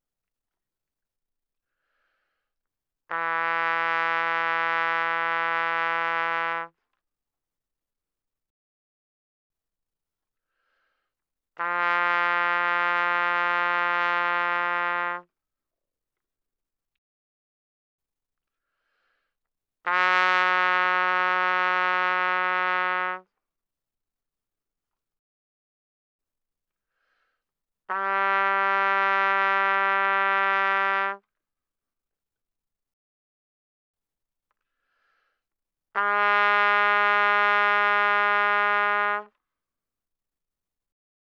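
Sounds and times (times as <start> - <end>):
trumpet without vibrato mezzo-forte E3 to B3: 3.1 - 6.7, 11.6 - 15.3, 19.8 - 23.3, 27.9 - 31.2, 36.0 - 39.3.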